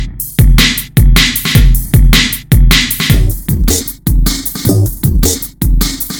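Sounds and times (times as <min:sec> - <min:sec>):
music beat: 0:00.0 - 0:06.1.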